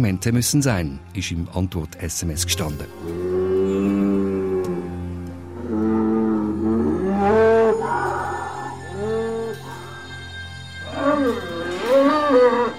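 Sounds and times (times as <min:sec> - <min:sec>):
speech: 0:00.0 - 0:03.2
bull bellowing at breeding bull market: 0:03.0 - 0:10.1, 0:10.8 - 0:12.7.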